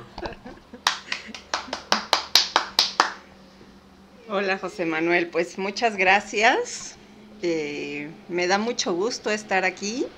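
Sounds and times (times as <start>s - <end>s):
crowd applause: 0.9s - 3.2s
speech: 4.3s - 10.1s.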